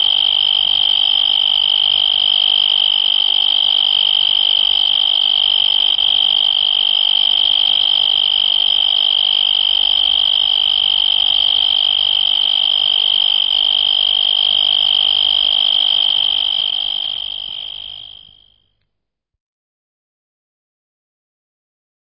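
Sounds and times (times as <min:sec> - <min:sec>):
insect giving a high-pitched pulsed trill: 0:00.0 - 0:18.6.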